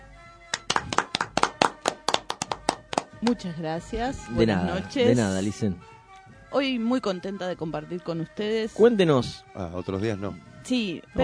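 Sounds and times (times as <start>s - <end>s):
applause from the table: 0.5s - 3.4s
speech: 3.2s - 11.2s.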